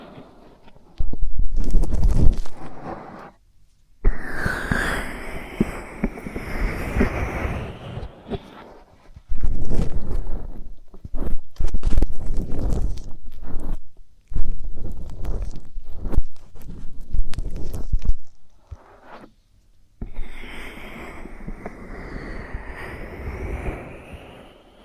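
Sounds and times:
scratchy rubbing and crackling: 0.0s - 3.4s, 4.0s - 24.7s
squeaky whistling sweep: 4.1s - 8.7s, 20.0s - 24.8s.

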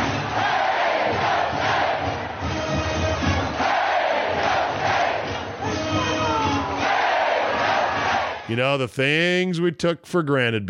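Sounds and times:
stadium crowd roaring and chanting: 0.1s - 8.5s
speech: 8.5s - 10.6s.

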